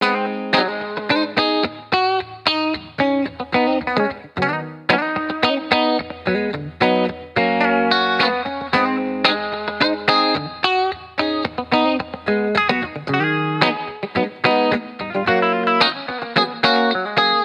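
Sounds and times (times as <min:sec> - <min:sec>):
1970s guitar mix at 110 bpm in G sharp: 0:00.0 - 0:17.4.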